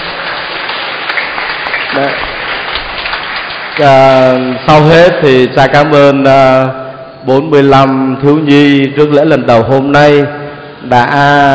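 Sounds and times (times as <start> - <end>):
children clapping: 0.0 - 4.8
speech: 2.0 - 2.3, 3.8 - 11.5.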